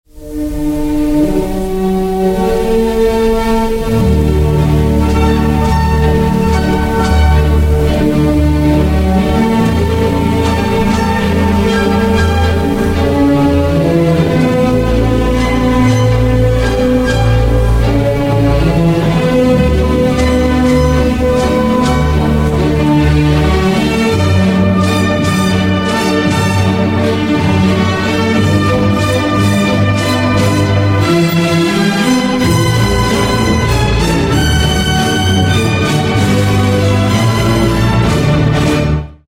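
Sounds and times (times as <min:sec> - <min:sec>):
music: 0:00.0 - 0:39.2.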